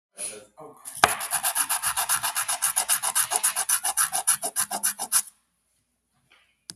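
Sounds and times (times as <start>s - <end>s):
sandpaper sanding: 1.0s - 5.3s.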